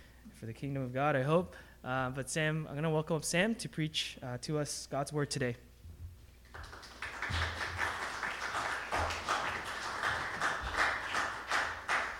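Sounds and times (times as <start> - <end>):
speech: 0.4 - 5.7
audience applause: 6.5 - 12.1.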